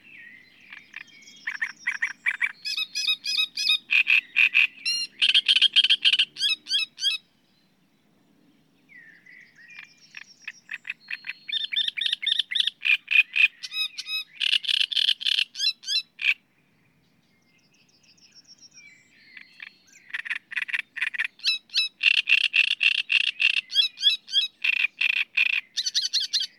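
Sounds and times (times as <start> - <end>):
great reed warbler croaking song: 0.0 - 7.6, 8.8 - 26.5.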